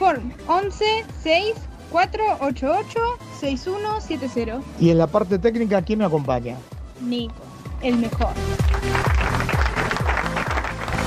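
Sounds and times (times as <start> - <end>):
speech: 0.0 - 9.1
applause sound effect played by radio operator: 8.5 - 11.0.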